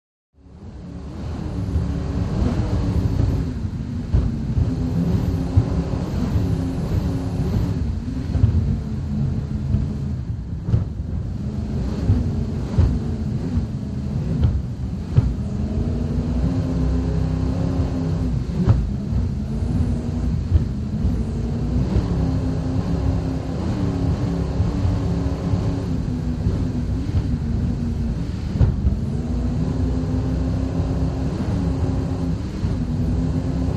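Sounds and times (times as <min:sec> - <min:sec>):
offshore powerboat racing: 0:00.4 - 0:33.7.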